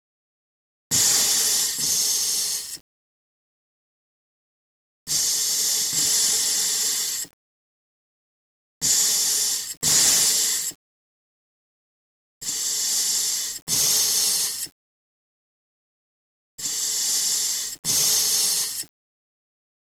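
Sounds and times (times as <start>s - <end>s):
breathing: 0.9s - 2.8s, 5.1s - 7.4s, 8.8s - 10.8s, 12.4s - 14.8s, 16.6s - 18.9s.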